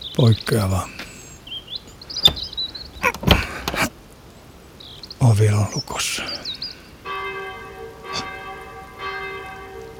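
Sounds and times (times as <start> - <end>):
steady rain-like hiss: 0.0 - 9.9
speech: 0.2 - 1.0, 5.3 - 6.5
church bells ringing: 7.0 - 9.9.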